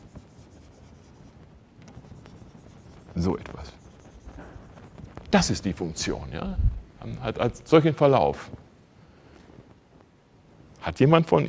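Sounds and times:
scratching strokes on a board drawing a function graph: 0.0 - 5.6
speech: 3.2 - 3.8, 5.3 - 8.6, 10.8 - 11.4.

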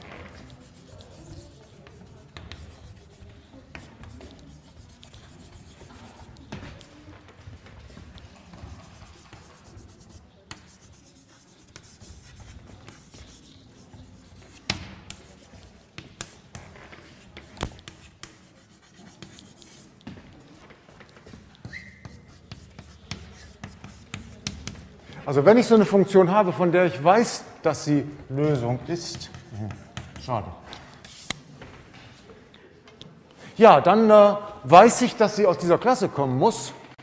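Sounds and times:
handwriting scratchy strokes writing out a solution: 0.1 - 7.0, 8.1 - 20.3, 21.0 - 25.0
speech: 25.3 - 30.6, 33.6 - 36.8.

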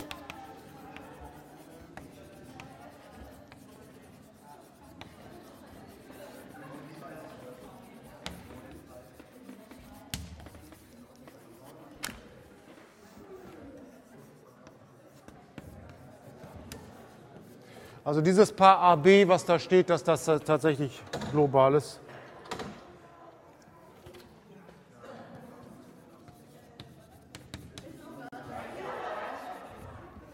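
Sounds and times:
chalk tapping on a blackboard: 0.0 - 17.7, 25.4 - 28.3
chalk writing on a blackboard during a mathematics lecture: 0.0 - 19.5, 25.1 - 30.3
speech: 18.1 - 22.0
laughter: 28.3 - 30.3.

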